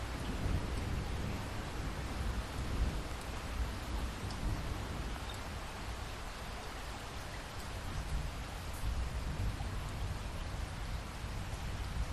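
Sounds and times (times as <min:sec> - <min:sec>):
light rain dripping after a thunderstorm: 0:00.0 - 0:12.1.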